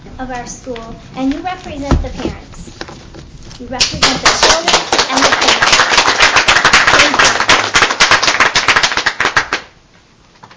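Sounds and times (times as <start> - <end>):
speech: 0.2 - 7.4
clapping applause: 3.8 - 9.7.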